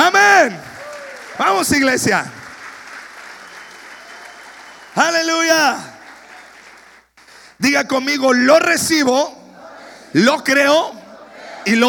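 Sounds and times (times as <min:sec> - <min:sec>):
church audience applause: 0:00.8 - 0:07.3
speech: 0:01.6 - 0:02.4, 0:05.0 - 0:05.9, 0:07.6 - 0:09.4, 0:10.1 - 0:11.0, 0:11.6 - 0:11.8.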